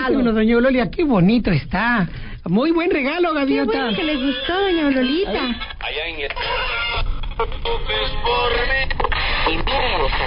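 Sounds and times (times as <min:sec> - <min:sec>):
speech: 0:00.0 - 0:06.8, 0:07.4 - 0:10.2
small portable radio playing music and voices: 0:03.0 - 0:10.2.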